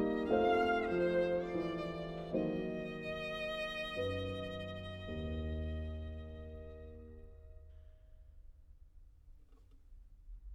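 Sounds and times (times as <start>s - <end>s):
solo violin playing an andante: 0.0s - 7.5s.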